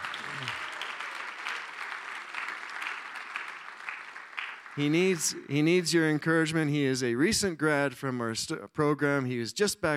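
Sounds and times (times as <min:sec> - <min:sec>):
church congregation applauding a program graduate: 0:00.0 - 0:05.4
speech: 0:04.8 - 0:09.9.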